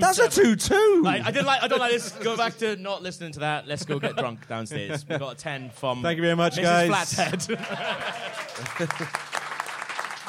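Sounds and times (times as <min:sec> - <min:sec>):
speech: 0:00.1 - 0:09.3
laughter: 0:01.0 - 0:02.6, 0:03.7 - 0:05.6, 0:06.6 - 0:09.4
sharp hand claps: 0:08.3 - 0:10.2.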